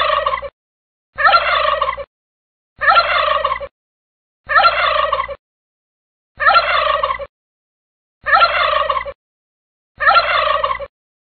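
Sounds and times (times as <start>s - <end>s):
turkey gobbling: 0.0s - 0.5s, 1.2s - 2.1s, 2.8s - 3.7s, 4.5s - 5.4s, 6.4s - 7.3s, 8.2s - 9.2s, 10.0s - 10.9s.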